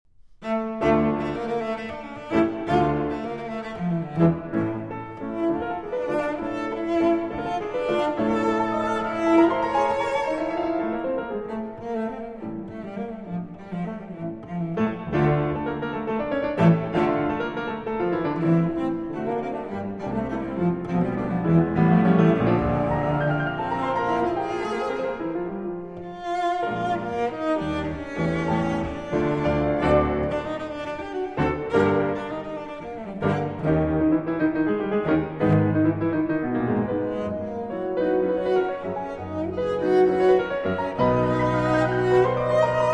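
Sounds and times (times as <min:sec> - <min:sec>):
cello sonata scherzo: 0:00.1 - 0:42.9.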